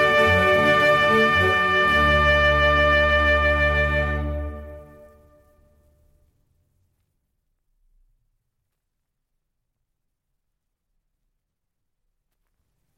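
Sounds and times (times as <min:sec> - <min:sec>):
trumpet sonata: 0:00.0 - 0:06.0.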